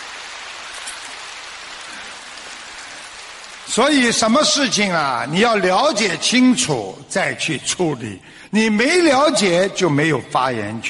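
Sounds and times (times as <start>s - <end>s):
faint applause: 0.0s - 4.4s
speech: 3.7s - 10.8s.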